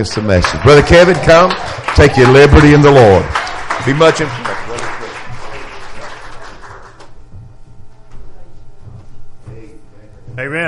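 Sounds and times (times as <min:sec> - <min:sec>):
speech: 0:00.0 - 0:04.6
audience applause: 0:00.0 - 0:07.2.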